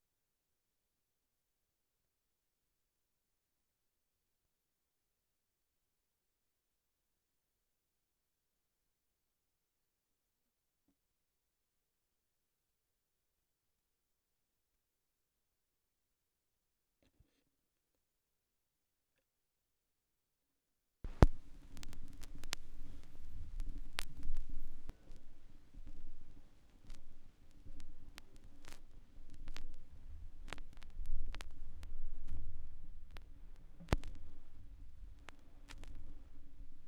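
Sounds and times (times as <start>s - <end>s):
vinyl record noise: 21.1s - 36.8s.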